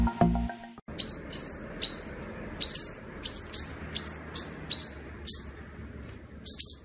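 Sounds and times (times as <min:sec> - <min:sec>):
juvenile scarlet-headed flowerpecker twittering: 0:00.9 - 0:05.7, 0:06.4 - 0:06.8.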